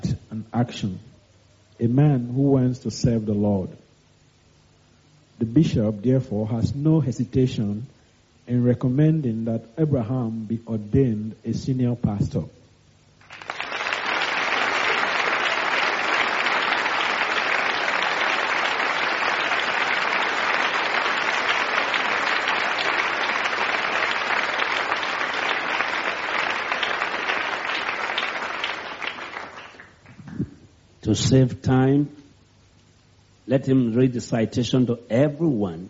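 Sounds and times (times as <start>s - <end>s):
speech: 0.6s - 1.1s, 1.8s - 3.8s, 5.4s - 12.6s, 31.2s - 32.2s, 33.5s - 35.8s
applause from a large audience: 13.2s - 30.2s.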